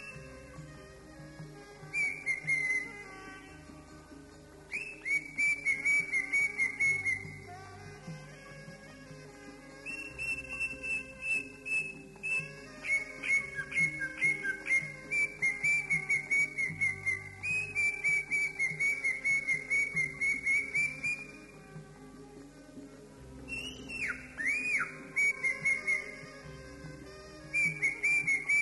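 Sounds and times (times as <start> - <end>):
greater green leafbird giving rapid repeated whistles: 2.0 - 2.9, 4.7 - 7.4, 9.9 - 21.4, 23.5 - 26.1, 27.6 - 28.6.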